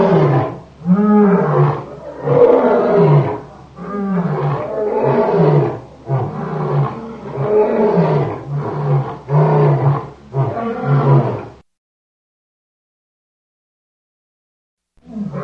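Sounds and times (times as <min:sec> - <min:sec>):
lion roaring: 0:00.0 - 0:11.6, 0:15.0 - 0:15.4.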